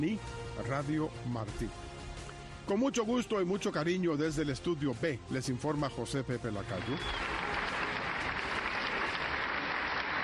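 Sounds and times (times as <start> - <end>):
speech: 0.0 - 2.0, 2.6 - 7.4
applause sound effect: 6.6 - 10.2.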